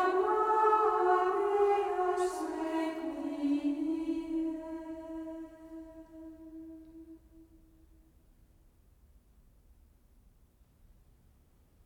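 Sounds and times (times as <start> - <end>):
chorus singing Gregorian chant hymns: 0.0 - 7.6.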